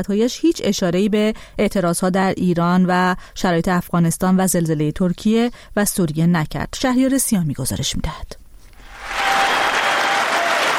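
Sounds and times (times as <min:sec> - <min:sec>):
speech: 0:00.0 - 0:08.4
applause in the US Congress for President Joe Biden: 0:08.8 - 0:10.7.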